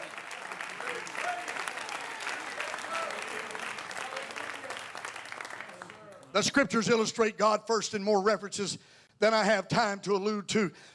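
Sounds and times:
audience clapping hands: 0.0 - 6.5
speech: 6.4 - 10.9.

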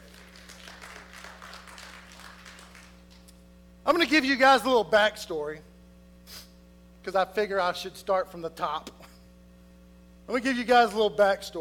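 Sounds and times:
audience clapping hands: 0.0 - 3.3
speech: 3.9 - 5.7, 7.0 - 9.0, 10.3 - 11.5.

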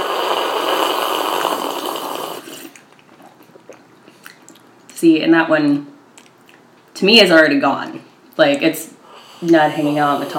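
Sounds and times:
person slurping coffee: 0.0 - 3.8
speech: 5.0 - 5.9, 7.0 - 10.3.

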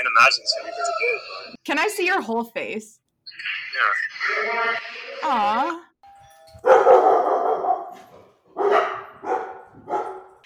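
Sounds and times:
speech: 0.2 - 5.9
dogs barking: 6.6 - 10.4.

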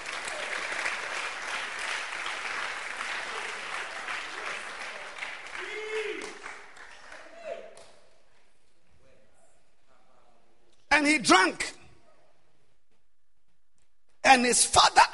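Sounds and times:
audience clapping hands: 0.0 - 8.6
speech: 11.0 - 11.8, 14.3 - 15.1.

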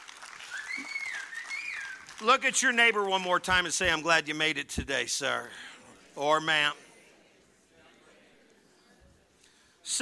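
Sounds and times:
crowd applause: 0.0 - 3.4
speech: 2.2 - 6.8.

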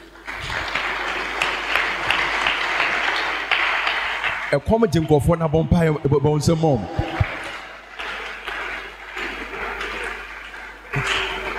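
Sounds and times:
audience clapping: 0.0 - 11.5
speech: 4.5 - 7.2.

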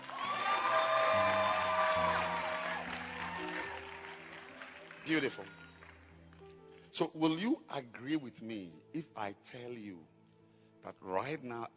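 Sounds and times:
whoops and shouts: 0.0 - 3.9
crowd clapping and cheering: 0.0 - 6.8
music playing: 0.0 - 11.7
speech: 5.1 - 5.6, 7.0 - 10.1, 10.8 - 11.7.

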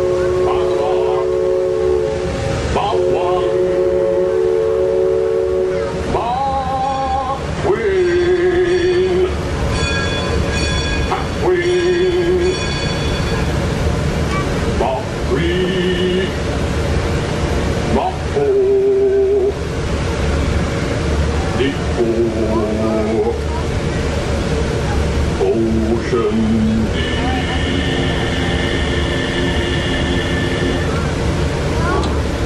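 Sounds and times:
steam whistle blasts: 0.0 - 7.3, 26.9 - 31.0
steamboat engine churning: 0.0 - 32.4.

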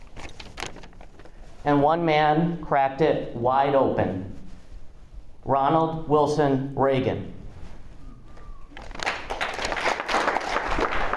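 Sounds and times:
speech: 1.6 - 4.4, 5.5 - 7.4
audience applause: 8.9 - 11.1.

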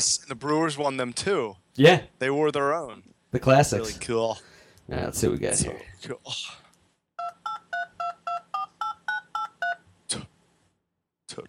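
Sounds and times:
speech: 0.0 - 6.6
touch-tone dialing beeps placing an internet video call: 7.2 - 9.8.

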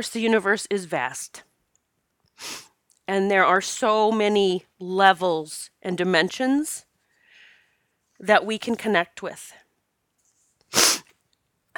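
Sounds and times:
speech: 0.0 - 1.5, 2.4 - 6.9, 8.2 - 9.6
nose snort while congested: 10.7 - 11.1.

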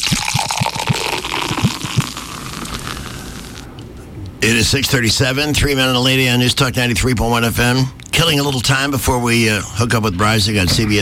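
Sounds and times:
pint of beer being poured: 0.0 - 3.7
speech: 4.4 - 11.0.

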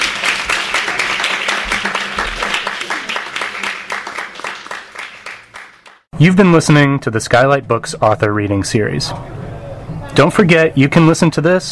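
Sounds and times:
audience applause: 0.0 - 6.0
speech: 6.2 - 9.4, 10.2 - 11.6.

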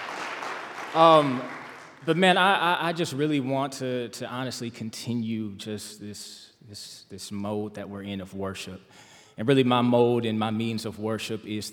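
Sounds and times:
audience clapping: 0.0 - 2.2
speech: 0.9 - 11.7.

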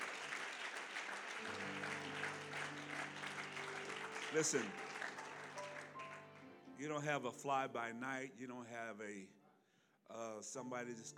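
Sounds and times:
audience clapping hands: 0.0 - 6.6
speech: 4.3 - 4.8, 6.8 - 9.4, 10.1 - 11.1.

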